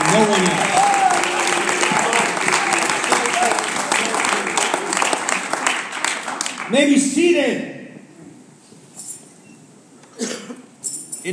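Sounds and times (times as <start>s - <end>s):
audience hand clapping: 0.0s - 6.8s
speech: 0.2s - 0.7s, 6.7s - 7.7s.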